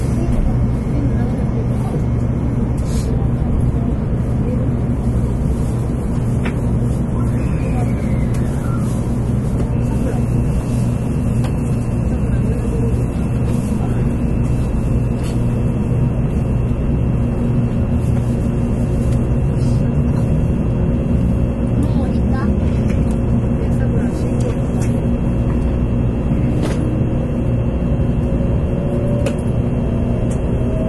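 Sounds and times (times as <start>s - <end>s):
Shinkansen Sakura running noise between Shin-Kobe and Shin-Osaka: 0.0s - 30.8s
faint rising whine: 25.0s - 30.8s.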